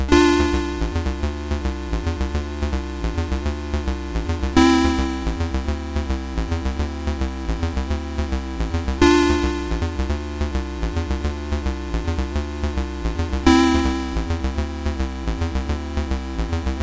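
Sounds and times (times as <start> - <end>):
SID chip stereo background music: 0.1 - 16.8.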